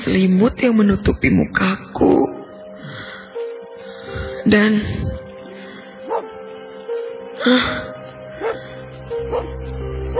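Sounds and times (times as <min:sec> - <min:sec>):
speech: 0:00.0 - 0:02.4, 0:04.4 - 0:05.2, 0:07.4 - 0:08.6, 0:09.2 - 0:10.1
dog barking: 0:06.1 - 0:06.3, 0:09.3 - 0:09.5.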